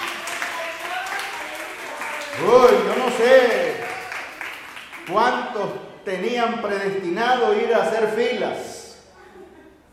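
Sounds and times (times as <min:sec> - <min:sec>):
church congregation clapping for the Lord: 0:00.0 - 0:05.8
speech: 0:02.4 - 0:03.8, 0:05.1 - 0:08.8.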